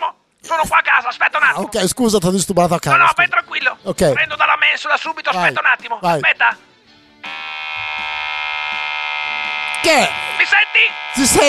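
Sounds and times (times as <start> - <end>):
speech: 0.5 - 6.7, 9.8 - 11.4
vibrator: 7.2 - 11.4.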